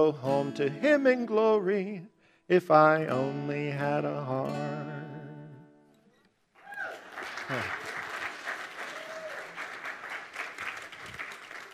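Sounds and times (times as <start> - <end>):
speech: 0.0 - 5.0, 7.5 - 7.8
audience applause: 6.6 - 11.7.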